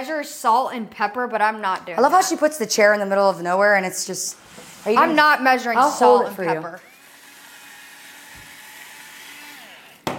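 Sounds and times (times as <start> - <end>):
speech: 0.0 - 6.9
electric salt and pepper grinder: 6.6 - 10.1.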